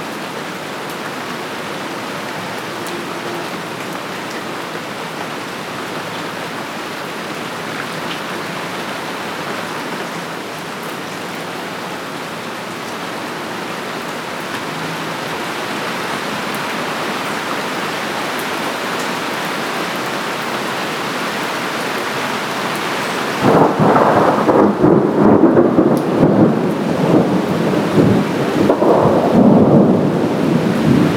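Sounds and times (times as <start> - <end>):
rain: 0.0 - 31.1
thunder: 23.4 - 31.1.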